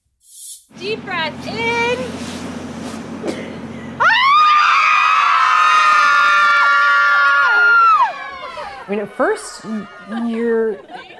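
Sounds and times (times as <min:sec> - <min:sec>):
speech: 0:00.8 - 0:02.6, 0:08.9 - 0:11.1
group of mothers screaming together outdoors in a parking lot: 0:04.0 - 0:10.4
laughter: 0:07.5 - 0:11.1.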